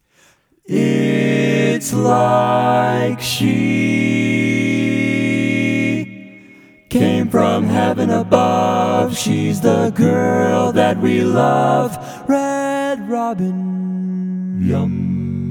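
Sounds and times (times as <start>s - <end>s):
barbershop tags all parts singing: 0.7s - 15.4s.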